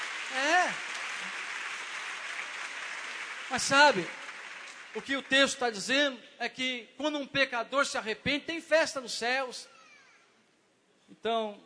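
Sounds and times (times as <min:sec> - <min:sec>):
church congregation clapping: 0:00.0 - 0:06.0
speech: 0:03.5 - 0:04.2, 0:05.0 - 0:09.8, 0:11.2 - 0:11.6.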